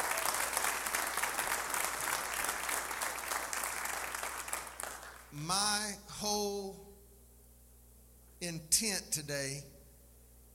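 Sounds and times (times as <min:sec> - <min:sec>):
church congregation applauding to welcome online viewers: 0:00.0 - 0:05.4
speech: 0:05.4 - 0:06.8, 0:08.4 - 0:09.7.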